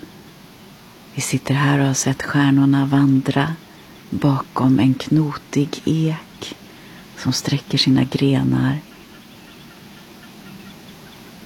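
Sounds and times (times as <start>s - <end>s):
Eurasian reed warbler singing at night: 0.0s - 11.4s
steady hiss: 0.0s - 11.4s
speech: 1.2s - 6.6s, 7.2s - 8.9s.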